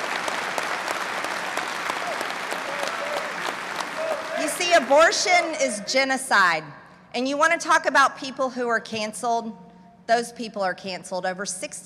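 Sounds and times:
crowd clapping: 0.0s - 5.8s
speech: 4.8s - 11.8s.

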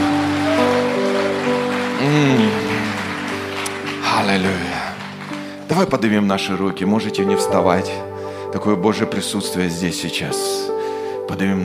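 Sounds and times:
audience applause: 0.0s - 6.1s
speech: 5.8s - 11.6s.

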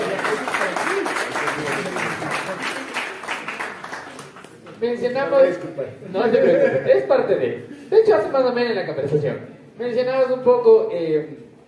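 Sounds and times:
audience applause: 0.0s - 4.7s
speech: 4.8s - 11.5s.

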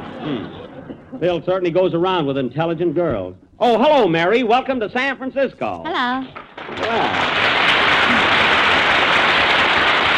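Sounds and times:
speech: 0.2s - 7.6s
studio audience applause from a large crowd: 6.5s - 10.1s.

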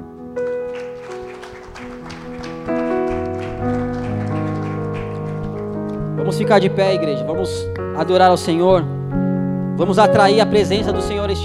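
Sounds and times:
sustained keyboard chords: 0.0s - 11.4s
church audience applauding: 0.4s - 6.6s
speech: 6.4s - 9.0s, 9.8s - 11.4s.

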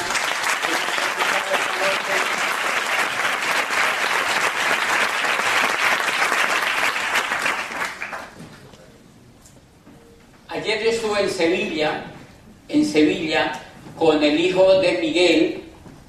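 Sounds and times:
audience applause: 0.0s - 8.4s
speech: 11.2s - 12.1s, 12.7s - 15.6s.

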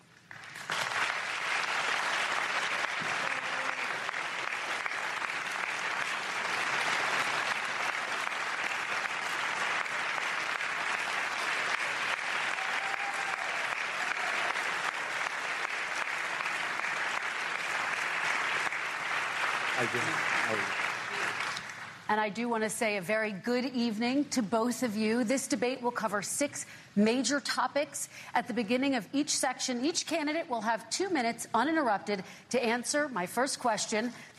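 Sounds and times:
presidential debate audience applause welcoming Joe Biden and Donald Trump: 0.3s - 22.1s
speech: 19.9s - 20.8s, 22.1s - 34.3s.

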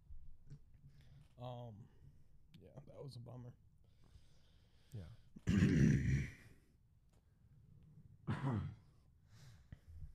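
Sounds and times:
speech: 1.4s - 2.0s, 2.6s - 3.6s, 4.9s - 6.4s
person coughing while drinking soda: 5.4s - 6.3s, 8.3s - 8.8s.

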